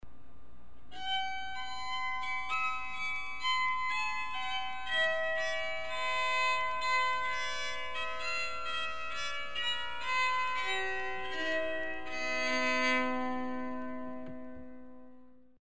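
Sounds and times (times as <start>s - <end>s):
bowed psaltery: 1.0s - 15.1s.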